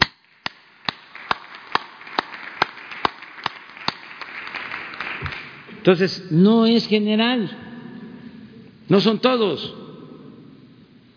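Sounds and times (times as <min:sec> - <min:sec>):
applause: 0:00.4 - 0:05.7
speech: 0:05.8 - 0:07.6, 0:08.9 - 0:09.8.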